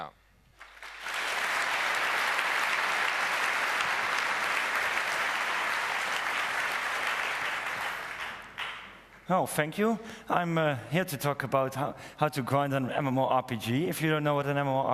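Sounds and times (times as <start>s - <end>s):
audience applause welcoming speaker: 0.5s - 9.2s
speech: 9.3s - 14.9s.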